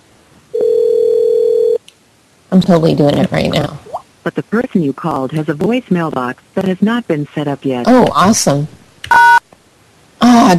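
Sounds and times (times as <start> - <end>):
telephone dial tone before a prank call: 0.5 - 1.8
speech: 2.6 - 8.8.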